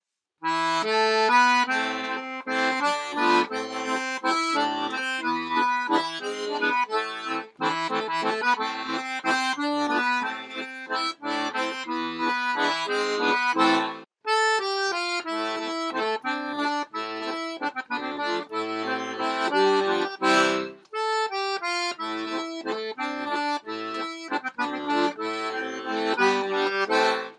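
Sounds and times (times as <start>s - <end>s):
waltz music: 0.5s - 27.3s.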